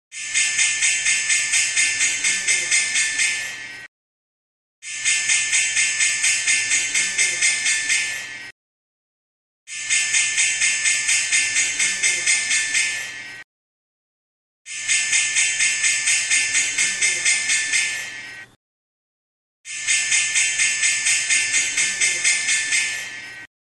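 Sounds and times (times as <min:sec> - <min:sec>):
bell loop: 0:00.1 - 0:03.9, 0:04.9 - 0:08.5, 0:09.7 - 0:13.4, 0:14.7 - 0:18.5, 0:19.7 - 0:23.5.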